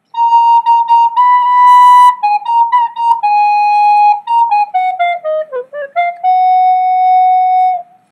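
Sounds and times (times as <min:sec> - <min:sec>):
recorder melody: 0:00.0 - 0:08.1.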